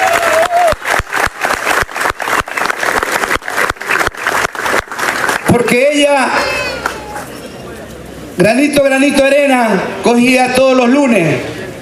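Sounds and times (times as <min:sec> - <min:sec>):
loud applause: 0:00.0 - 0:06.1
speech: 0:05.7 - 0:06.6, 0:08.4 - 0:11.5.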